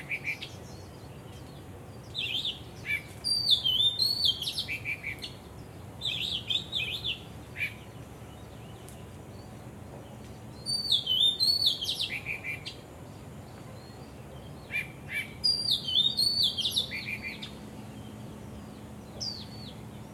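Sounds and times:
birds singing: 0.0s - 20.1s.

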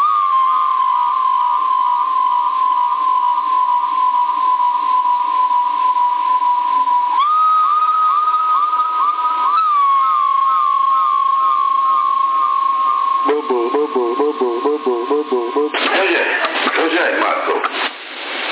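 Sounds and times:
steady warbling tone of a CB radio transmission on an Intek HR5005: 0.0s - 17.6s
garbled voice on CB radio repeating in rapid echoes from an echo effect: 13.2s - 17.7s
burst of harsh static-heavy CB radio noise: 15.7s - 18.5s.

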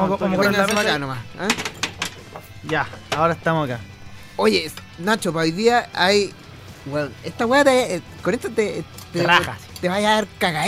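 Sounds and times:
speech: 0.0s - 1.8s, 2.6s - 10.6s
cutlery and dishes clinking: 0.4s - 3.2s.

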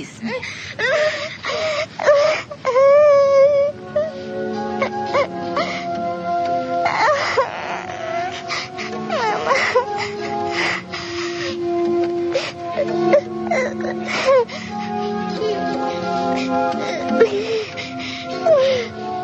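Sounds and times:
girl sobbing bitterly: 0.2s - 6.1s, 6.7s - 19.1s.

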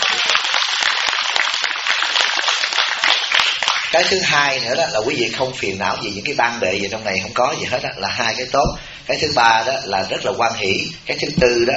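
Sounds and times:
audience applauding at a Buddhist teaching session: 0.0s - 4.1s
speech: 3.9s - 11.7s.

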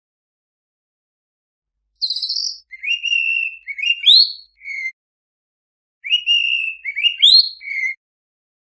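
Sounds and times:
Oriental magpie-robin singing vigorously: 2.0s - 5.0s, 6.0s - 8.0s.

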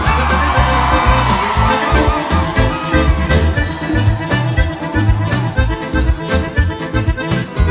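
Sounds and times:
crowd shouting and whooping with joy: 0.0s - 7.6s.

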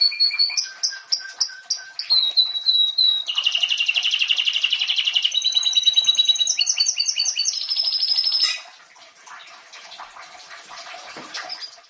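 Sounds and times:
Domestic canary song: 0.0s - 8.7s, 11.3s - 11.8s.

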